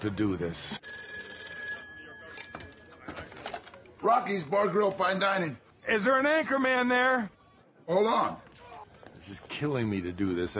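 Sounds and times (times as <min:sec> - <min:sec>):
speech: 0:00.0 - 0:01.2, 0:04.0 - 0:08.4, 0:09.2 - 0:10.5
telephone ringing: 0:00.8 - 0:03.6.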